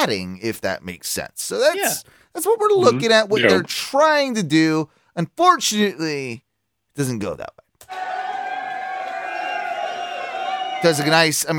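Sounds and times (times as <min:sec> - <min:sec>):
speech: 0:00.0 - 0:06.4, 0:07.0 - 0:08.2, 0:10.8 - 0:11.5
crowd cheering: 0:07.9 - 0:11.5.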